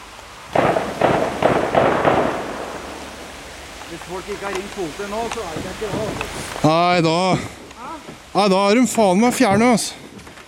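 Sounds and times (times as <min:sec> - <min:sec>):
gunshots fired on Utøya island: 0:00.5 - 0:03.0
speech: 0:03.9 - 0:10.0.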